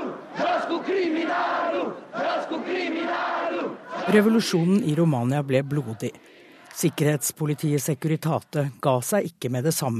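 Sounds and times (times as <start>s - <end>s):
angry crowd shouting during revolution: 0.0s - 4.8s, 5.6s - 7.2s
speech: 0.8s - 9.9s.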